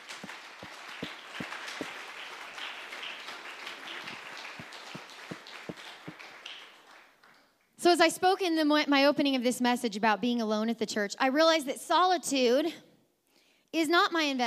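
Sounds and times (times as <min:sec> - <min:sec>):
audience clapping hands: 0:00.0 - 0:07.7
speech: 0:07.8 - 0:12.9, 0:13.8 - 0:14.4.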